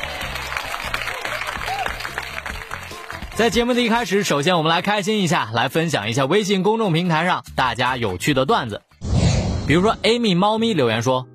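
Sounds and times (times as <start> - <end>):
applause: 0.0 - 4.4
speech: 3.4 - 8.9, 9.7 - 11.3.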